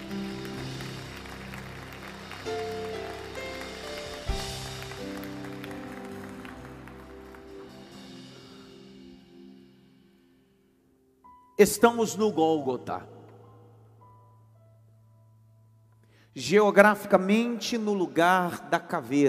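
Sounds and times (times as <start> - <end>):
audience applause: 0.0 - 8.5
speech: 11.6 - 13.2, 16.4 - 19.2.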